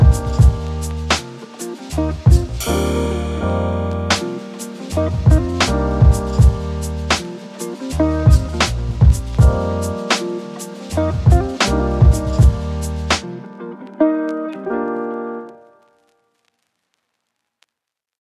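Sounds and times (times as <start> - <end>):
lo-fi beats: 0.0 - 13.4.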